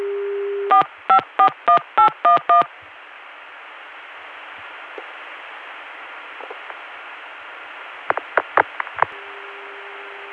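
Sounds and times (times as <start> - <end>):
steady low telephone dial tone: 0.0 - 2.7, 9.1 - 10.3
touch-tone dialing beeps: 0.7 - 2.7
hissing line static: 0.7 - 10.3.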